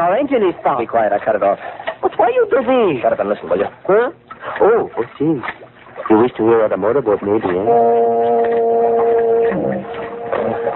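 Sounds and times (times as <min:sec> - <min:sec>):
speech: 0:00.0 - 0:10.7
ship's foghorn blowing: 0:07.6 - 0:10.7.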